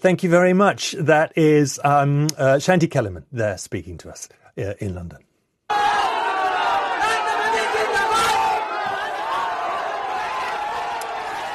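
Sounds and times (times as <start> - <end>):
speech: 0.0 - 6.0
enthusiastic street crowd cheering: 5.7 - 11.5.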